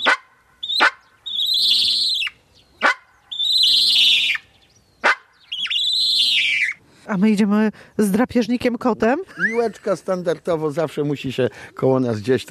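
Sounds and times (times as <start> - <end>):
bird alarm calls warning of a cat: 0.0 - 6.8
speech: 7.1 - 12.5.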